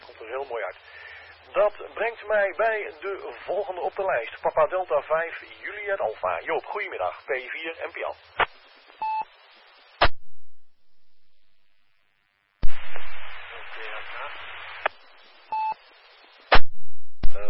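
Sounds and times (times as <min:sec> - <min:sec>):
faint modulated voice in radio static: 0:00.0 - 0:08.4, 0:13.0 - 0:15.2, 0:17.3 - 0:17.4
band-limited radio hiss: 0:00.0 - 0:10.2, 0:12.6 - 0:16.6, 0:17.2 - 0:17.4
speech: 0:00.3 - 0:08.5.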